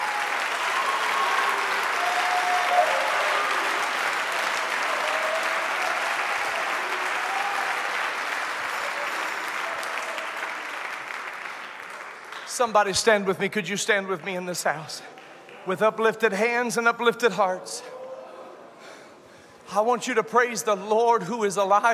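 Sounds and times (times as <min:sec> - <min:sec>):
audience clapping: 0:00.0 - 0:13.3, 0:13.9 - 0:16.0
speech: 0:12.6 - 0:18.0, 0:19.7 - 0:21.9.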